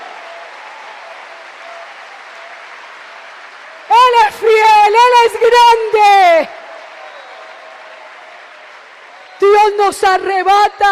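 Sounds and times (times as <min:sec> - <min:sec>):
audience applause: 0:00.0 - 0:10.9
speech: 0:04.3 - 0:06.6, 0:09.6 - 0:10.9.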